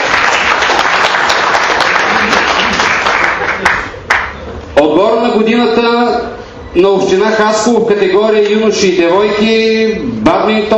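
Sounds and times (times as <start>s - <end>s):
audience applause: 0.0s - 4.4s
speech: 4.8s - 10.7s.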